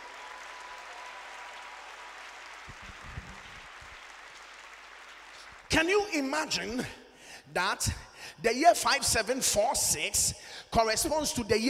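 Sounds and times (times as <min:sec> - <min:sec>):
audience applause: 0:00.0 - 0:05.7
speech: 0:05.7 - 0:11.6.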